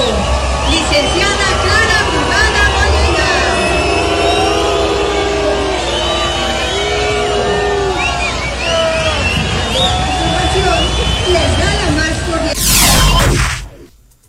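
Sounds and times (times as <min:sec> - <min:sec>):
crowd booing a politician: 0:00.0 - 0:13.3
sharp burst of noise: 0:12.5 - 0:14.0.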